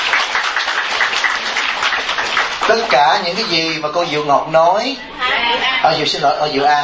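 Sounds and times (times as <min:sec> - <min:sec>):
round of applause at a Buddhist gathering: 0:00.0 - 0:03.8
speech: 0:02.7 - 0:06.8.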